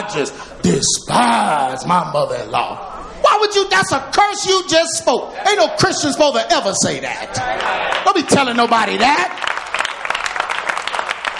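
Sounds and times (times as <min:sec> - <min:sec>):
speech: 0:00.0 - 0:02.9, 0:03.6 - 0:09.5
hand claps from several people: 0:09.1 - 0:11.3.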